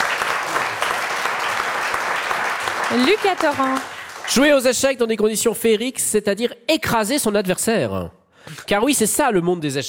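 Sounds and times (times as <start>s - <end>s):
audience applause: 0.0s - 4.8s
speech: 2.9s - 9.8s.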